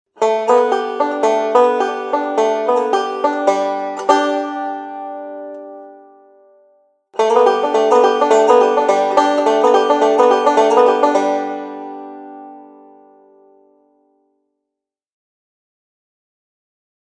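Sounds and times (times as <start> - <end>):
banjo: 0.1 - 6.6, 7.2 - 13.9.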